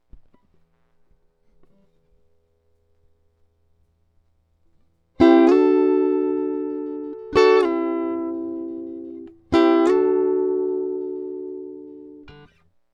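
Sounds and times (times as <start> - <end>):
electric guitar: 5.2 - 12.7.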